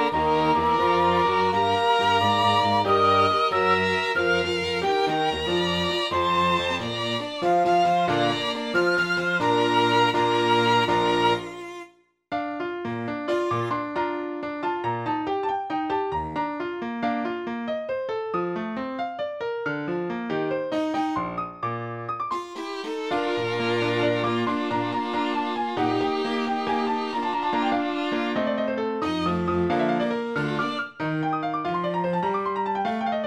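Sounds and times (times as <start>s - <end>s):
strings in a piano concerto: 0.0s - 11.9s, 13.3s - 14.3s, 22.3s - 31.4s
piano in a piano concerto: 0.0s - 33.2s.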